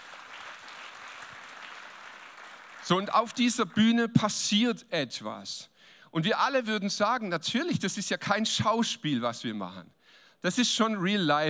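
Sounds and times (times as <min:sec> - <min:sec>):
worship audience applause for musicians on stage: 0:00.0 - 0:03.4
speech: 0:02.9 - 0:11.4.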